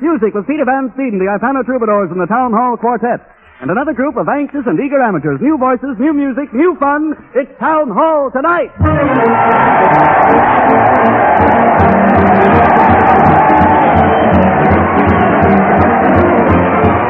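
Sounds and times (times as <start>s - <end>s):
speech: 0.1s - 13.7s
crowd cheering: 8.8s - 17.0s.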